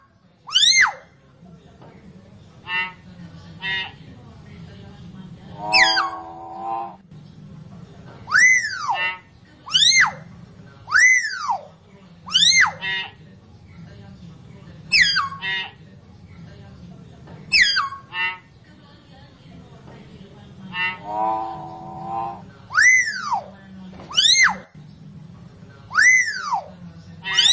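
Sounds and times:
lovebird calls used as a lure: 0:00.5 - 0:01.0, 0:02.6 - 0:04.0, 0:05.5 - 0:07.0, 0:08.3 - 0:10.2, 0:10.9 - 0:11.7, 0:12.3 - 0:13.2, 0:14.9 - 0:15.8, 0:17.5 - 0:18.5, 0:20.7 - 0:24.7, 0:25.9 - 0:27.5.

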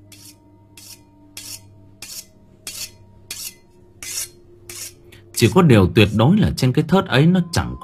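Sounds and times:
knife being sharpened in the kitchen: 0:00.1 - 0:05.0
speech: 0:05.4 - 0:07.8.

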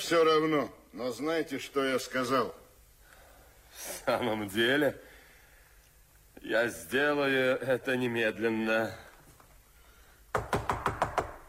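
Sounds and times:
speech: 0:00.1 - 0:02.6, 0:03.8 - 0:05.1, 0:06.4 - 0:09.1
knocking on a door: 0:10.3 - 0:11.4.

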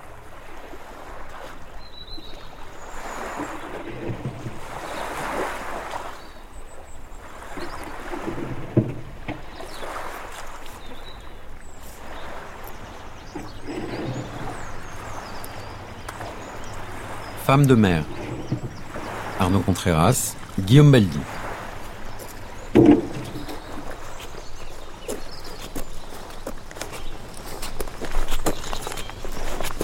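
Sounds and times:
oars working a rowing boat on the sea: 0:00.0 - 0:29.8
steady wash of sea waves: 0:00.0 - 0:29.8
wood knocking on a rowing boat: 0:08.1 - 0:09.8, 0:15.4 - 0:19.7, 0:21.3 - 0:24.1
speech: 0:17.5 - 0:18.6, 0:19.4 - 0:21.4.

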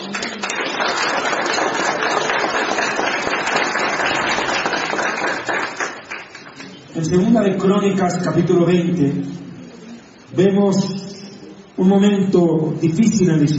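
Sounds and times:
audience applause: 0:00.0 - 0:06.7
speech: 0:01.0 - 0:01.4, 0:07.0 - 0:09.4, 0:10.4 - 0:11.0, 0:11.8 - 0:13.5.

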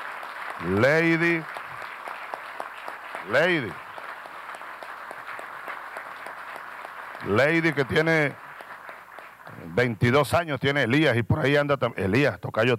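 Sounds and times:
applause for young archery competitors: 0:00.0 - 0:09.6
speech: 0:00.6 - 0:01.6, 0:03.2 - 0:03.8, 0:07.2 - 0:08.4, 0:09.8 - 0:12.7.

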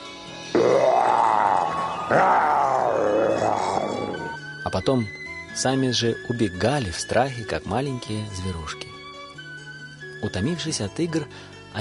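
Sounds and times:
boys roaring imitating tigers and lions: 0:00.5 - 0:04.4
speech: 0:02.1 - 0:02.5, 0:04.8 - 0:09.0, 0:10.2 - 0:11.8.

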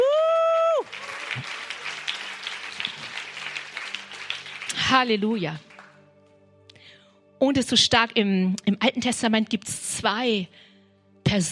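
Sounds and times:
audience applauding: 0:00.0 - 0:06.0
speech: 0:04.9 - 0:05.7, 0:07.4 - 0:10.7, 0:11.3 - 0:11.5.

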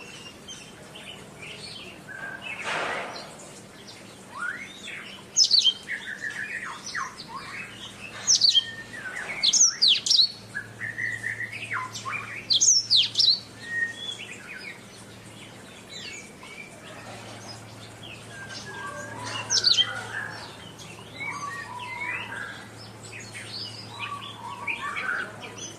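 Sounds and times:
Oriental magpie-robin in sustained song: 0:00.0 - 0:25.7.

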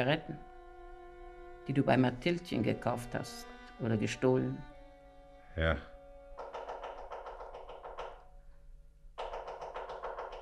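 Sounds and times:
speech: 0:00.0 - 0:00.5, 0:01.6 - 0:04.7, 0:05.6 - 0:05.9
woodpecker drumming on wood: 0:06.2 - 0:08.3, 0:09.2 - 0:10.4.

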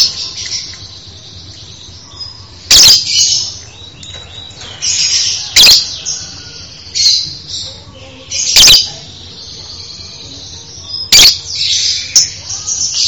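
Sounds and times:
songbird song: 0:00.0 - 0:13.0.

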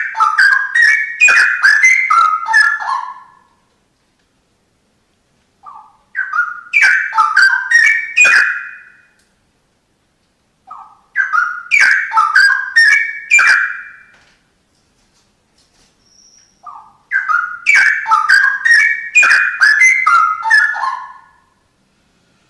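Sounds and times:
Oriental magpie-robin song: 0:00.0 - 0:03.6, 0:05.6 - 0:09.2, 0:10.7 - 0:14.2, 0:16.0 - 0:21.6.

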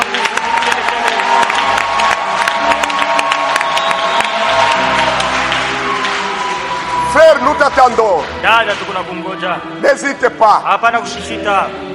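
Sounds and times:
shouts and whoops: 0:00.0 - 0:07.9
crowd applause and cheering at a worship gathering: 0:00.0 - 0:10.3
speech: 0:07.6 - 0:11.9.

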